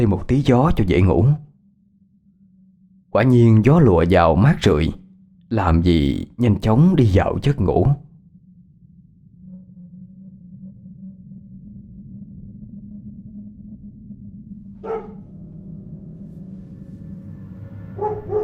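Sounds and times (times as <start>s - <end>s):
speech: 0.0s - 1.5s, 3.1s - 8.0s
dog barking on the shore: 14.8s - 15.3s, 18.0s - 18.4s.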